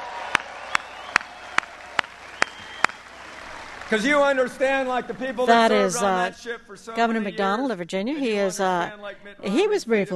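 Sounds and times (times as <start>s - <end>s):
sharp evenly spaced claps: 0.0s - 5.0s
audience applauding for veterans: 0.0s - 6.0s
speech: 3.9s - 10.1s.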